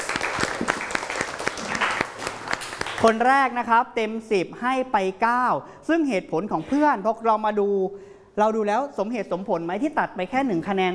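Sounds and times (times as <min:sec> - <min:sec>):
class of students applauding a classmate's answer: 0:00.0 - 0:03.2
speech: 0:03.0 - 0:10.9.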